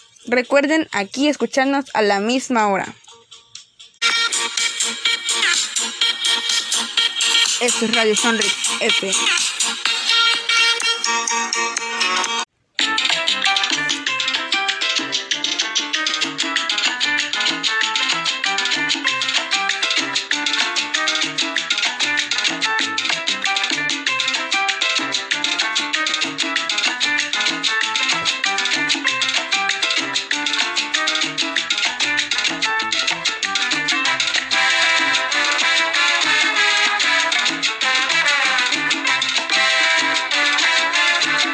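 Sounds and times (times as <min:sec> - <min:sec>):
song on the radio: 0:00.0 - 0:41.5
speech: 0:00.2 - 0:03.0, 0:07.6 - 0:09.5.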